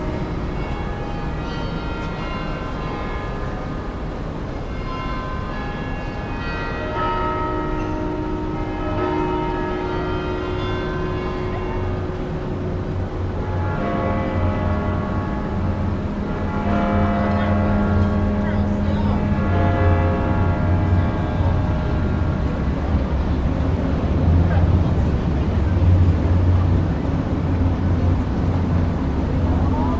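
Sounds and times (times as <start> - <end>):
clock tower striking in a Brisbane city square: 0.0 - 29.9
people in a city square in Brisbane Australia: 0.0 - 29.9.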